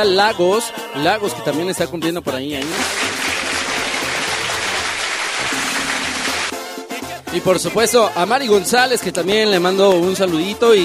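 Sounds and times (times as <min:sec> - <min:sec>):
speech: 0:00.0 - 0:03.1, 0:07.3 - 0:10.8
applause at a birthday shout-out on a grupero music show: 0:02.6 - 0:06.6.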